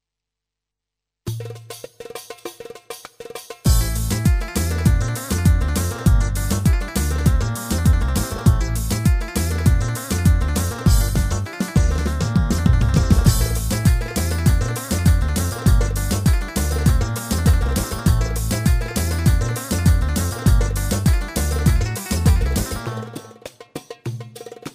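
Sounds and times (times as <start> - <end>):
Yamaha PSR A300TR V2 keyboard music: 3.7 - 23.4.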